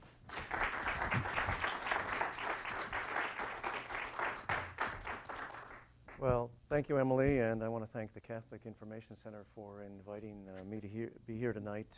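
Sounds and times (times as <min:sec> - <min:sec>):
evening lecture audience applauding at the Catholic Information Center: 0:00.0 - 0:06.2
speech: 0:06.2 - 0:11.9.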